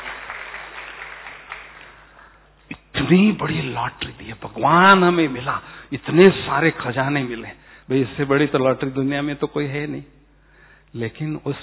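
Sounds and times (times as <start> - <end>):
audience clapping at a spiritual talk: 0.0 - 2.5
speech: 3.1 - 10.2, 10.9 - 11.6.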